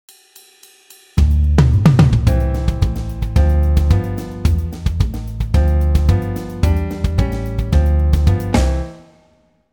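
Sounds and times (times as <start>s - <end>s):
jazz guitar backing: 1.6s - 9.0s.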